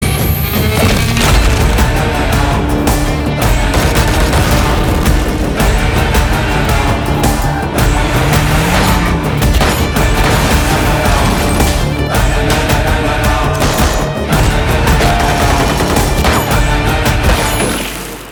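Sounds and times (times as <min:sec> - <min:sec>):
trailer background music: 0:00.0 - 0:18.3.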